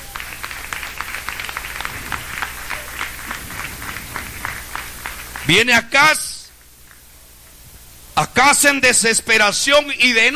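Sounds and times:
audience clapping hands: 0.0 - 7.1
low hum: 0.0 - 8.2
speech: 5.5 - 6.3, 8.2 - 10.3.

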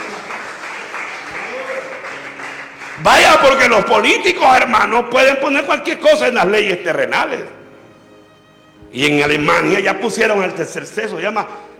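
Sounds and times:
congregation applauding during an afternoon church service: 0.0 - 4.4
speech: 3.0 - 7.6, 8.9 - 11.7.

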